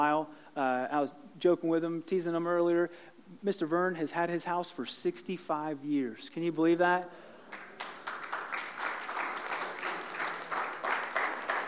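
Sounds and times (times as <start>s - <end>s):
speech: 0.0s - 7.9s
church audience applauding: 7.5s - 11.6s.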